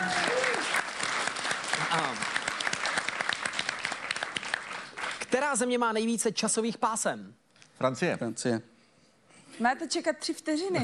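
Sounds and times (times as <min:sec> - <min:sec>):
applause: 0:00.0 - 0:05.9
speech: 0:05.3 - 0:08.7, 0:09.6 - 0:10.8.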